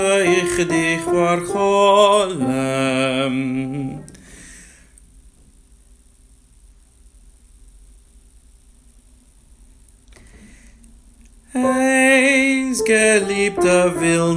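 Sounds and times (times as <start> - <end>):
soprano singing a verse in sections: 0.0 - 4.1, 11.5 - 14.3.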